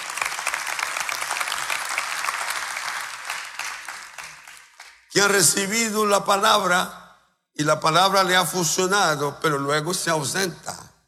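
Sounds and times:
audience applause: 0:00.0 - 0:05.1
speech: 0:05.2 - 0:07.0, 0:07.6 - 0:10.8.

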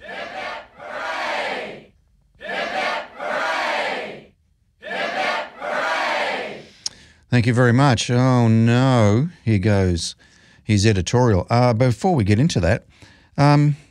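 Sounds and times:
crowd giving three cheers: 0:00.0 - 0:01.8, 0:02.4 - 0:06.6
speech: 0:07.4 - 0:13.8.

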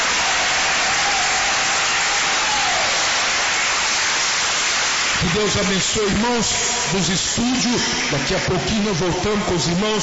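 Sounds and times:
audience clapping: 0:00.0 - 0:07.2
speech: 0:05.3 - 0:10.0.

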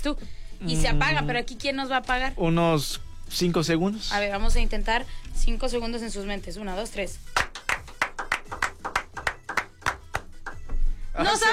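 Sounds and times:
speech: 0:00.0 - 0:07.5, 0:11.2 - 0:11.5
people clapping hands: 0:07.3 - 0:10.8.

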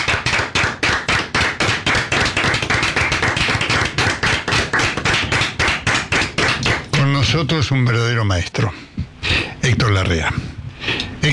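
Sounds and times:
studio audience applause: 0:00.0 - 0:07.0
speech: 0:07.4 - 0:09.1, 0:09.7 - 0:11.3.

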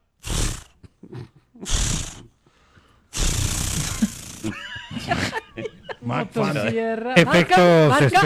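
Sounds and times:
voice imitating a chainsaw trying to start: 0:00.2 - 0:00.8, 0:01.6 - 0:02.3, 0:03.1 - 0:06.7
people talking: 0:03.2 - 0:08.2
laughter: 0:03.8 - 0:08.2.

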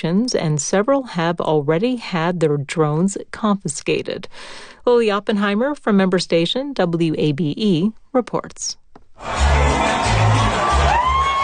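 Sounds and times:
speech: 0:00.0 - 0:10.4
football fans cheering at World Cup fan fest in Atlanta: 0:09.2 - 0:11.4
shouts and whoops: 0:09.2 - 0:11.4.

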